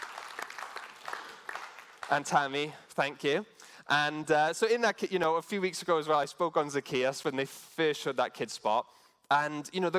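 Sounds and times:
audience applause: 0.0 - 2.2
speech: 2.1 - 9.9.

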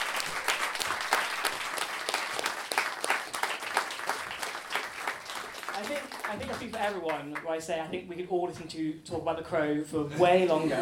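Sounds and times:
audience applause: 0.0 - 7.4
speech: 6.3 - 10.8.

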